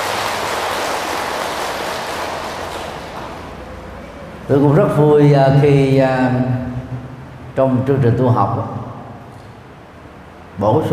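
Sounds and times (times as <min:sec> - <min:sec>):
loud round of applause: 0:00.0 - 0:03.9
speech: 0:04.5 - 0:07.0, 0:07.6 - 0:08.9, 0:10.6 - 0:10.9.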